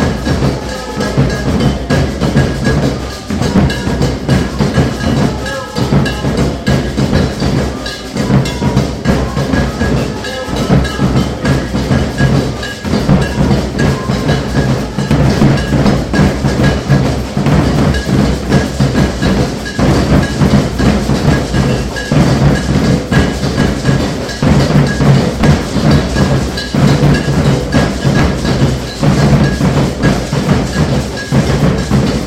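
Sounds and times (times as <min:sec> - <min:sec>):
samba maracatu rehearsal: 0:00.0 - 0:32.2.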